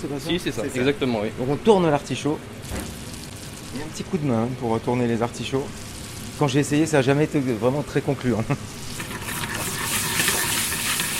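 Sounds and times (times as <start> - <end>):
speech: 0.0 - 2.9, 3.7 - 9.0
butter foaming in a frying pan: 2.7 - 4.2, 5.4 - 7.4, 8.5 - 11.1.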